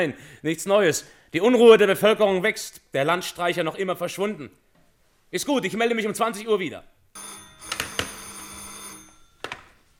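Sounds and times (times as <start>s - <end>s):
speech: 0.0s - 4.6s, 5.3s - 7.3s
old-fashioned telephone bell ringing: 7.2s - 9.9s.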